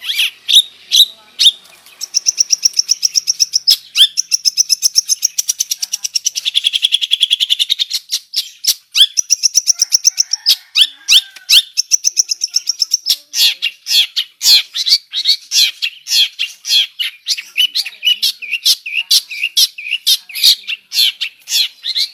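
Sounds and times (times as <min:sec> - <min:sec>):
long-tailed shrike harsh scratchy song: 0:00.0 - 0:22.1.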